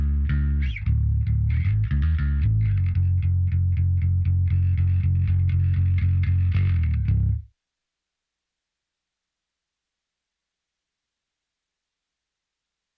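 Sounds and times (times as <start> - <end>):
bass: 0.0 - 7.5
guitars: 0.0 - 7.5.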